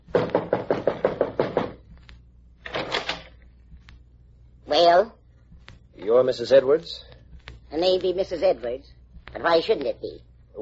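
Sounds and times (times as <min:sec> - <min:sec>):
firm knocks on a door: 0:00.0 - 0:01.9
speech: 0:04.7 - 0:05.2, 0:06.0 - 0:07.1, 0:07.7 - 0:10.5.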